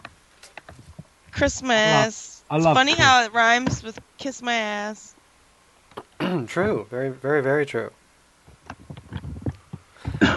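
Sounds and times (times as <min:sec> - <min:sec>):
speech: 0:01.4 - 0:05.2, 0:06.4 - 0:08.0
person coughing: 0:06.2 - 0:06.6, 0:10.1 - 0:10.3.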